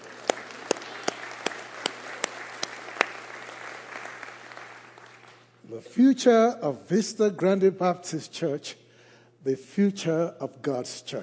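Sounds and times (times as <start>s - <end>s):
audience applause: 0.0s - 5.5s
speech: 5.7s - 8.8s, 9.4s - 11.2s.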